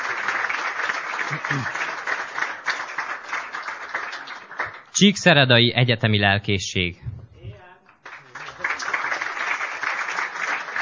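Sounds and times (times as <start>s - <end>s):
audience applause: 0.0s - 4.9s, 8.0s - 10.8s
speech: 1.3s - 1.8s, 5.0s - 7.1s.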